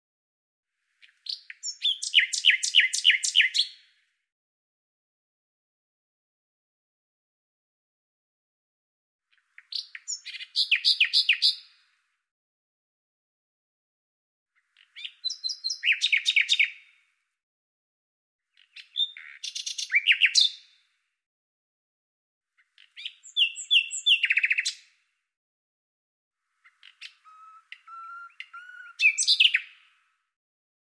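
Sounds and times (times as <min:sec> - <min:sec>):
common nightingale singing: 0:01.0 - 0:03.9, 0:09.3 - 0:11.7, 0:14.6 - 0:16.9, 0:18.6 - 0:20.7, 0:22.6 - 0:24.9, 0:26.6 - 0:30.1.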